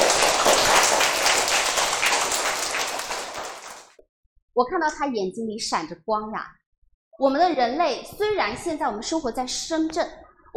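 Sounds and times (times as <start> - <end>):
audience applause: 0.0 - 4.0
speech: 4.6 - 6.6, 7.2 - 10.5.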